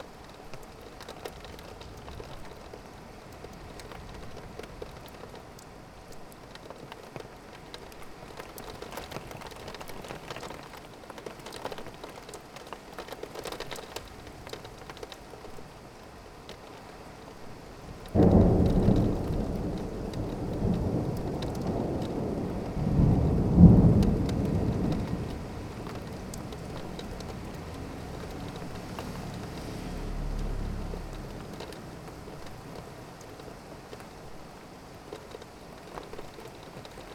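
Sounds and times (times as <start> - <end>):
rain heard out of a window: 0.0 - 37.1
thunder: 18.1 - 32.8.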